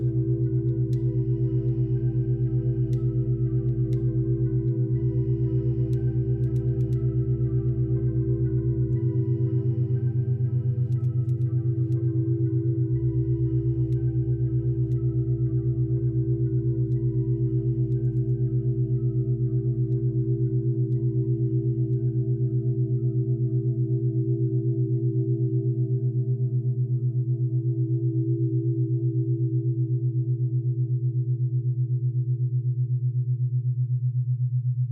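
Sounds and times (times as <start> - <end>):
deep bass tones: 0.0 - 32.6
binaural beats smooth low hum: 0.0 - 34.9.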